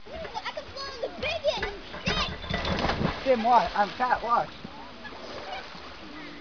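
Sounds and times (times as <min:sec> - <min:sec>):
people: 0:00.0 - 0:06.3.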